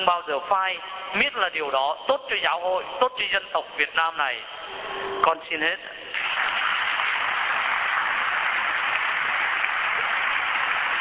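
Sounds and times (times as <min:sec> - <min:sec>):
speech: 0:00.0 - 0:06.0
crowd applause: 0:06.0 - 0:10.9.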